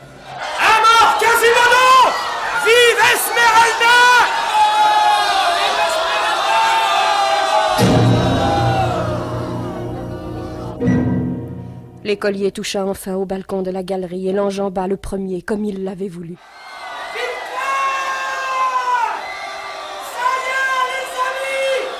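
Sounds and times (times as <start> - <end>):
crowd surging forward shouting: 0.0 - 11.0, 16.4 - 21.9
speech: 12.2 - 16.7.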